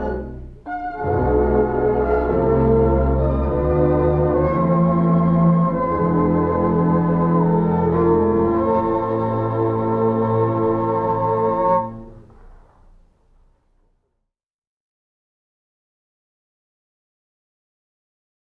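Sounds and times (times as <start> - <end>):
fast classical suite in A minor: 0.0 - 13.2.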